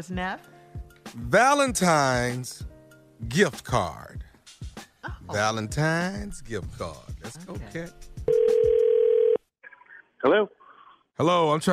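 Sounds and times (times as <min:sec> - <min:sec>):
speech: 0:00.0 - 0:04.2, 0:05.3 - 0:08.6, 0:10.2 - 0:10.6, 0:11.2 - 0:11.7
telephone ringing for a call: 0:08.3 - 0:09.5.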